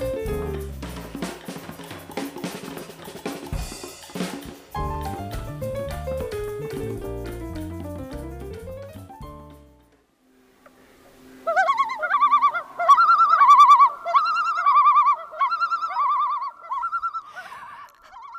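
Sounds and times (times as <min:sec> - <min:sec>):
common loon calls: 0:11.4 - 0:18.3.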